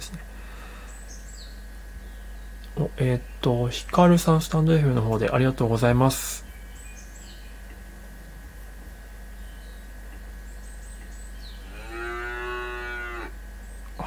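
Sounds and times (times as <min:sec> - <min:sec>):
steady low hum: 0:00.0 - 0:14.0
speech: 0:02.8 - 0:06.4
cow mooing as a greeting: 0:11.6 - 0:13.4.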